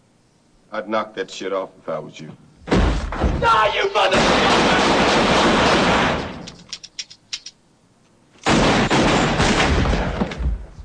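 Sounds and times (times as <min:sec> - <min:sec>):
speech: 0:00.7 - 0:02.5, 0:03.4 - 0:04.9
gunshots from a film scene: 0:02.7 - 0:06.6, 0:08.4 - 0:10.6.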